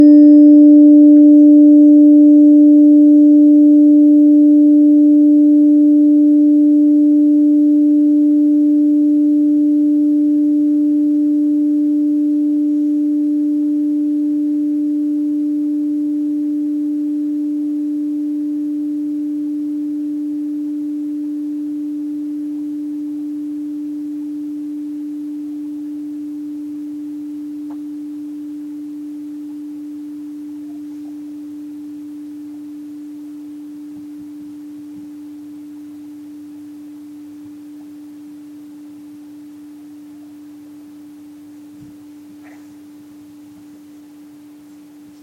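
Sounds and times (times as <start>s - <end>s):
tuning forks ringing: 0.0s - 24.8s.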